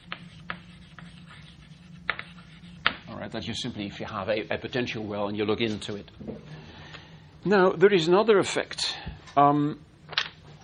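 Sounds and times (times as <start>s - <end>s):
equation being written by hand: 0.0s - 3.1s
speech: 3.2s - 6.7s, 7.4s - 9.9s.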